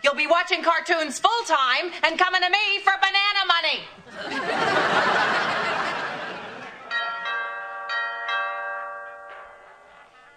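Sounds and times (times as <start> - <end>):
speech: 0.2 - 3.0
noisy laughter: 4.1 - 7.0
doorbell chiming a melody: 6.9 - 10.3.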